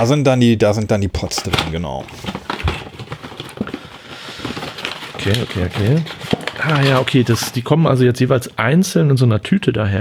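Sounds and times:
speech: 0.0 - 2.4, 5.2 - 9.9
opening a cardboard box: 1.2 - 7.7.

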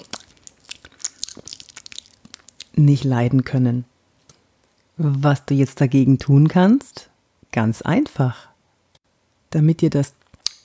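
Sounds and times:
smacking chewing noises with crunchy bites: 0.0 - 2.8
speech: 2.8 - 3.9, 5.0 - 8.5, 9.5 - 10.2.

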